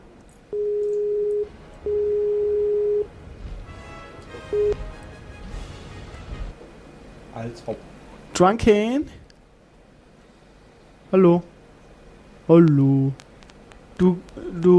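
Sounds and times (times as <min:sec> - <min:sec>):
phone call ringing tone: 0:00.5 - 0:03.1, 0:04.4 - 0:04.8
speech: 0:07.4 - 0:09.2, 0:11.1 - 0:11.5, 0:12.5 - 0:13.2, 0:14.0 - 0:14.7.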